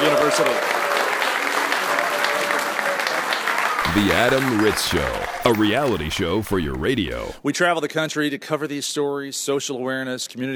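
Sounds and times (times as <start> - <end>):
crowd applauding: 0.0 - 7.4
speech: 0.4 - 0.8, 4.0 - 10.5.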